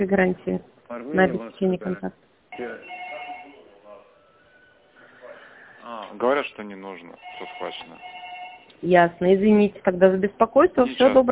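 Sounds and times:
speech: 0:00.0 - 0:03.0, 0:05.9 - 0:08.2, 0:08.8 - 0:11.2
voices: 0:00.9 - 0:08.0
telephone ringing: 0:02.5 - 0:03.8, 0:07.2 - 0:08.8.

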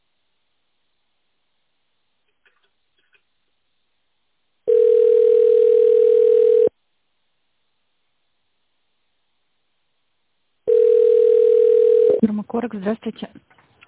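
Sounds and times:
telephone ringback tone while on hold: 0:04.7 - 0:06.7, 0:10.7 - 0:12.2
speech: 0:12.4 - 0:13.8.

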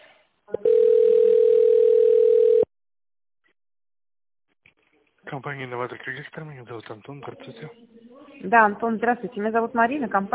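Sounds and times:
telephone signal tone: 0:00.6 - 0:02.7
speech: 0:05.4 - 0:10.3.

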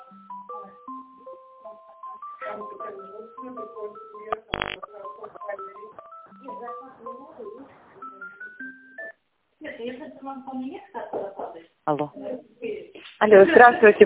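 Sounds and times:
speech: 0:02.6 - 0:08.1, 0:09.7 - 0:14.0
telephone dialing tones while connecting a call: 0:04.0 - 0:09.2.

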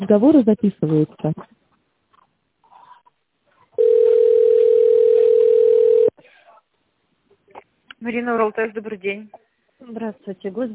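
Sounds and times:
speech: 0:00.0 - 0:01.6, 0:08.0 - 0:10.7
telephone ringback tone: 0:03.8 - 0:06.1.

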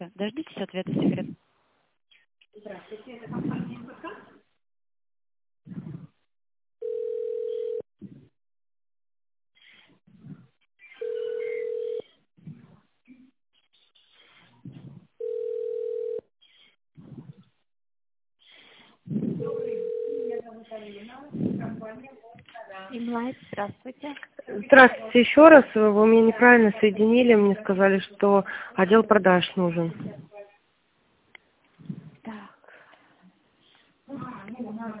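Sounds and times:
speech: 0:00.1 - 0:01.4, 0:20.4 - 0:30.3
telephone ringback tone while on hold: 0:06.8 - 0:07.8, 0:11.0 - 0:12.2, 0:15.2 - 0:16.2, 0:19.4 - 0:20.4.

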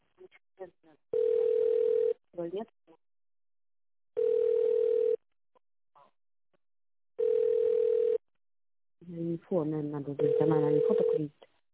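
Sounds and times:
telephone ringback tone while a call is transferred to a secretary: 0:01.2 - 0:02.2, 0:04.2 - 0:05.2, 0:07.2 - 0:08.2, 0:10.2 - 0:11.2
speech: 0:02.4 - 0:02.8, 0:09.5 - 0:11.6.

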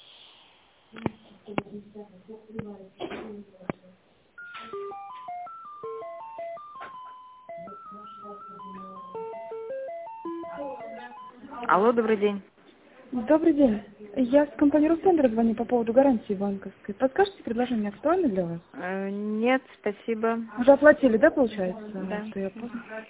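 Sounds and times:
speech: 0:00.9 - 0:05.0, 0:11.6 - 0:12.5, 0:13.1 - 0:23.0
electronic telephone tones while a call is transferred: 0:04.4 - 0:11.8.

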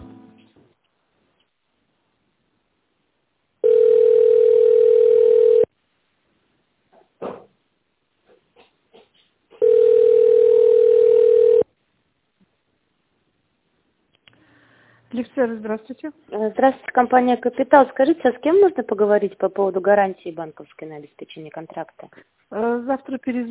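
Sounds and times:
telephone ringback tones: 0:03.6 - 0:05.7, 0:09.6 - 0:11.7
speech: 0:15.4 - 0:23.4.

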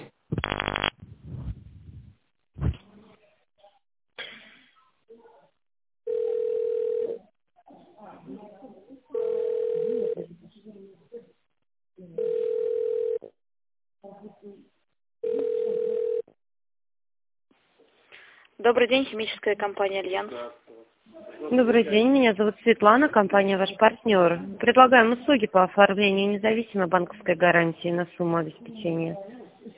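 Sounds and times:
telephone ringback tone: 0:06.1 - 0:07.2, 0:09.2 - 0:10.2, 0:12.2 - 0:13.2, 0:15.2 - 0:16.2
speech: 0:18.7 - 0:20.6, 0:21.5 - 0:29.3.

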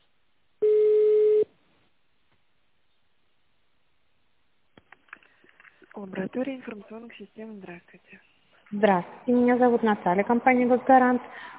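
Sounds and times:
ringing tone on an outgoing phone call: 0:00.6 - 0:01.5
speech: 0:06.0 - 0:11.5.

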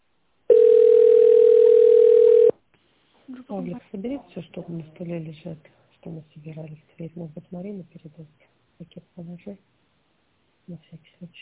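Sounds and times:
telephone tone while waiting for connection: 0:00.5 - 0:02.6
speech: 0:03.6 - 0:09.8, 0:10.7 - 0:11.4.

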